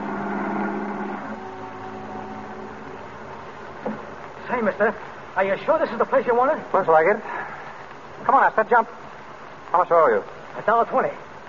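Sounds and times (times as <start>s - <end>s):
taxi cab engine veering around a corner and pulling up: 0.0s - 3.8s
speech: 4.5s - 7.4s, 8.3s - 9.0s, 9.7s - 11.2s.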